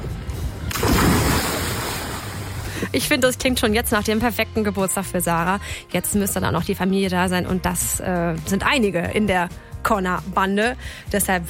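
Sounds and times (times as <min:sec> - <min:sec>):
open-sea waves rushing: 0:00.6 - 0:02.9
speech: 0:02.9 - 0:11.4.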